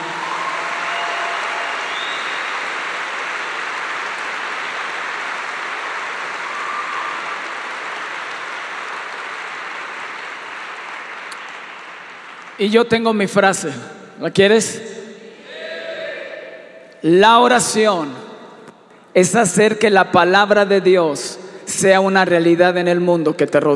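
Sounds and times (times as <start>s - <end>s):
crowd applauding loudly: 0.0s - 12.8s
speech: 12.6s - 14.9s, 17.0s - 18.3s, 19.2s - 23.7s.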